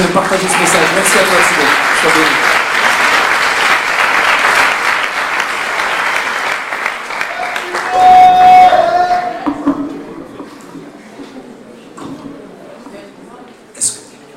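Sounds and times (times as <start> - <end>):
speech: 0.0 - 2.6
audience applause: 0.0 - 9.5
high whoop or tone: 7.2 - 9.5.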